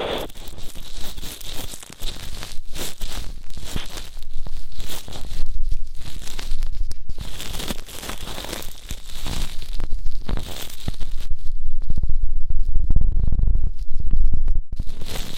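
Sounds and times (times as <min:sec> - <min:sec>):
ear cleaning crackles and scratches: 0:00.0 - 0:15.3.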